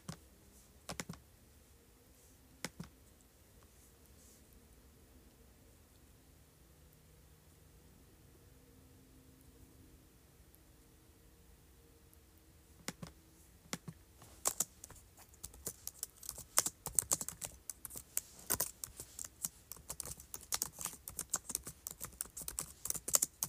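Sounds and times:
keyboard typing: 0:00.9 - 0:01.2, 0:02.6 - 0:02.9, 0:12.8 - 0:23.4.

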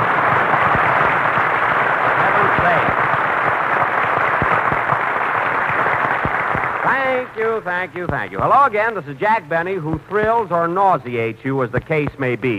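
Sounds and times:
studio audience applause: 0:00.0 - 0:07.9
speech: 0:07.6 - 0:12.5.

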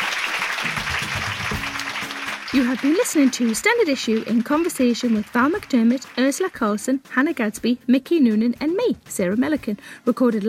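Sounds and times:
live comedy club audience applauding: 0:00.0 - 0:06.6
speech: 0:02.5 - 0:10.4.

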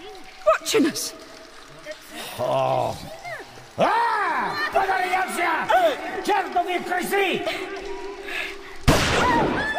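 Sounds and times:
speech: 0:00.7 - 0:01.2, 0:02.4 - 0:03.2, 0:03.8 - 0:08.1
gunshot fired to scare away rats: 0:08.9 - 0:09.7.

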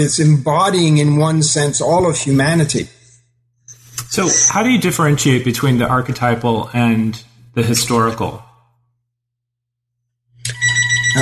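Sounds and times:
speech: 0:00.0 - 0:03.0, 0:04.1 - 0:08.5
telephone ringing with bright electronic trill: 0:10.5 - 0:11.2.

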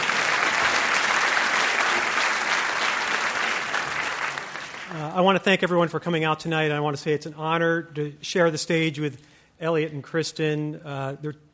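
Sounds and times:
audience applause: 0:00.0 - 0:05.1
speech: 0:05.2 - 0:11.5.

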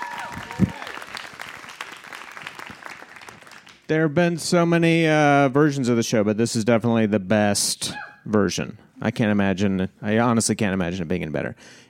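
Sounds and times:
audience applause: 0:00.0 - 0:03.9
speech: 0:03.9 - 0:11.8.

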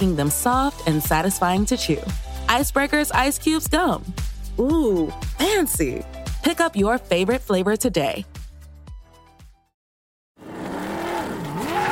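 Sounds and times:
speech: 0:00.0 - 0:08.3
race cars screaming past: 0:10.4 - 0:11.9.

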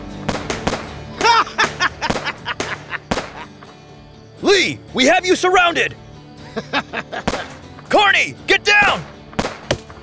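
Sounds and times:
gunshots in a radio drama shootout: 0:00.2 - 0:03.5, 0:07.2 - 0:07.6, 0:08.8 - 0:10.0
laughter: 0:01.1 - 0:03.6, 0:06.4 - 0:07.6
speech: 0:04.6 - 0:06.0, 0:06.6 - 0:09.1.

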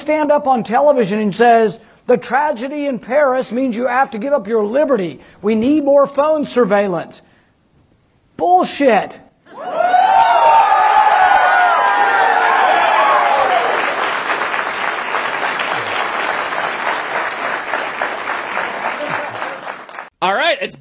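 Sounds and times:
speech: 0:00.0 - 0:07.3, 0:08.4 - 0:09.8, 0:20.5 - 0:20.7
crowd cheering and whooping at a speech: 0:09.5 - 0:14.0
crowd applause at a speech: 0:09.6 - 0:20.7.

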